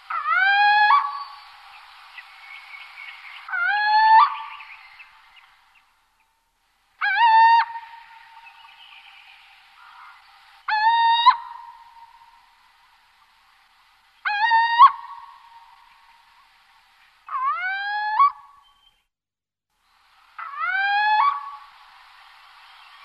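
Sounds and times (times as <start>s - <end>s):
little owl territorial call: 0.0s - 5.5s, 7.0s - 12.5s, 14.2s - 16.5s, 17.3s - 18.9s, 20.4s - 21.7s.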